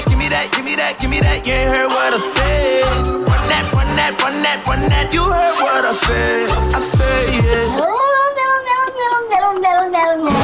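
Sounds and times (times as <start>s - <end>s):
speech: 0.4s - 8.3s
cat meowing on a novelty record: 7.8s - 10.4s.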